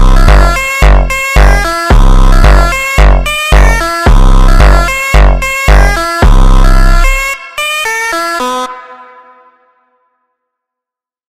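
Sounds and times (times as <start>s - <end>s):
slowed funk music: 0.0s - 7.4s.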